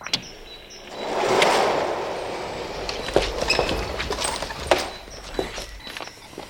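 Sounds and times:
gate being opened: 0:00.1 - 0:05.8.

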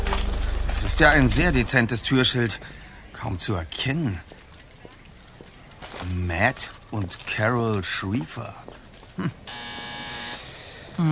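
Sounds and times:
speech: 0:00.8 - 0:04.3, 0:06.0 - 0:09.8, 0:11.0 - 0:11.1
loud low electric doorbell buzz: 0:09.5 - 0:10.4.

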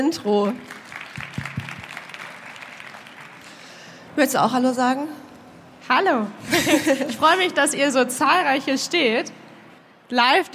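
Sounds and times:
speech: 0:00.0 - 0:00.8, 0:04.2 - 0:05.2, 0:05.9 - 0:09.4, 0:10.1 - 0:10.5
live audience applause: 0:00.6 - 0:03.8.

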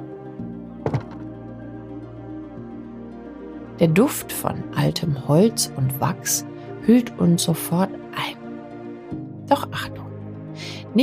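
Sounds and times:
small wooden door opening: 0:00.8 - 0:01.4
speech: 0:03.8 - 0:08.4, 0:09.5 - 0:10.0.

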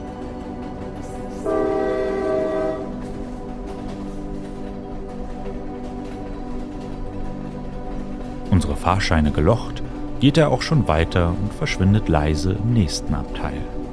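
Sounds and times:
train rumble and rattle as it starts to move: 0:00.0 - 0:13.9
locomotive whistle at a station platform: 0:01.4 - 0:03.0
speech: 0:08.8 - 0:13.8.

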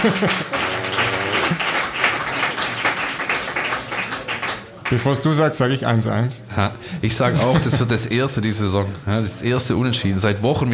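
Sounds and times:
speech: 0:00.0 - 0:00.6, 0:04.9 - 0:10.7
laughter: 0:00.0 - 0:02.0, 0:07.1 - 0:08.1
murmuring voices: 0:00.0 - 0:02.2
scattered hesitant applause: 0:00.0 - 0:05.1.

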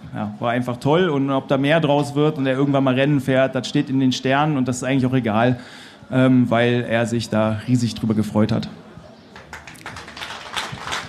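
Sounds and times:
speech: 0:00.2 - 0:08.8
audience applause: 0:09.4 - 0:11.0.

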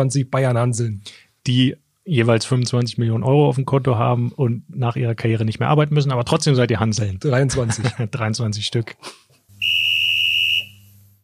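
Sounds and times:
speech: 0:00.0 - 0:09.4
laughter: 0:07.4 - 0:08.2
referee whistle blowing for kickoff: 0:09.6 - 0:10.9.

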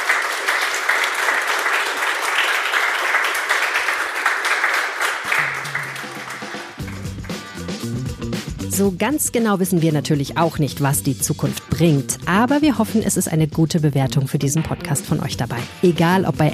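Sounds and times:
audience applause: 0:00.0 - 0:07.8
speech: 0:08.8 - 0:16.5.

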